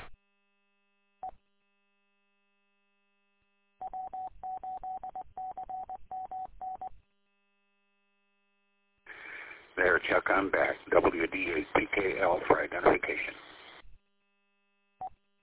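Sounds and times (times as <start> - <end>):
telephone touch-tone dialing beeps: 3.8 - 6.9
speech: 9.8 - 13.5.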